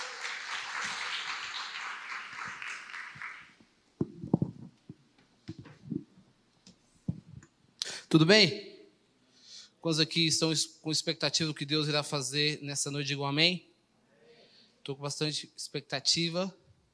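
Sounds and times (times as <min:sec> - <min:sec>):
audience applause: 0:00.0 - 0:03.6
speech: 0:08.1 - 0:08.7, 0:09.8 - 0:13.7, 0:14.9 - 0:16.6.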